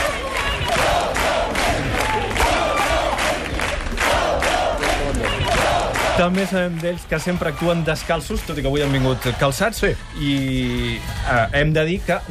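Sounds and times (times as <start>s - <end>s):
gospel choir shouting its battle cry in rhythmic bursts: 0.0s - 6.2s
speech: 6.2s - 12.2s.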